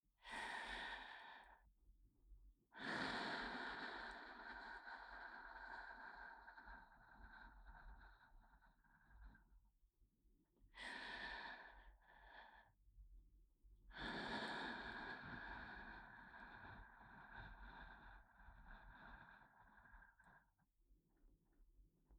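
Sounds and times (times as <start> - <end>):
breathing in the left ear: 0.2 - 1.8, 2.7 - 9.7, 10.7 - 12.8, 13.9 - 20.8.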